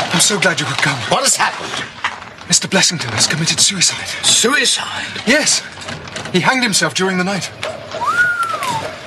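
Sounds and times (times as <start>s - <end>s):
speech: 0.1s - 8.2s
whistle: 8.0s - 8.9s.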